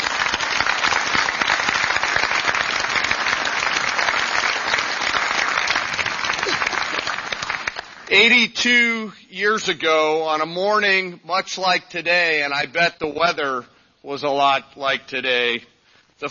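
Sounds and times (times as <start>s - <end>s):
large audience applause: 0.0s - 8.1s
speech: 8.2s - 16.2s.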